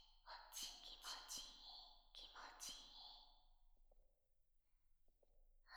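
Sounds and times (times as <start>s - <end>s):
person whispering: 0.3s - 3.2s.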